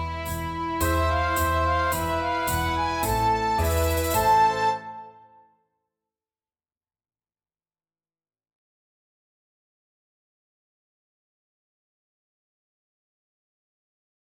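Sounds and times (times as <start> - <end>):
melodic tango music: 0.0 - 5.4.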